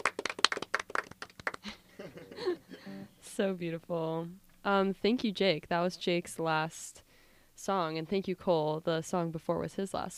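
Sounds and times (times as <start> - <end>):
audience clapping: 0.0 - 1.8
speech: 3.4 - 7.0, 7.6 - 10.1.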